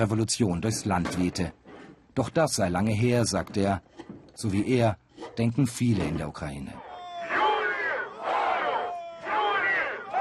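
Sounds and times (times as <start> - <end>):
speech: 0.0 - 1.6, 2.2 - 6.8
large protest crowd chanting a slogan: 6.8 - 10.2.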